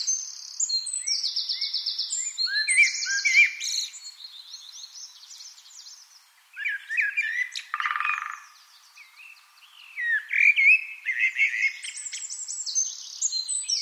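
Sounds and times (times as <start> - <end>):
Eurasian wren song: 0.0 - 13.8.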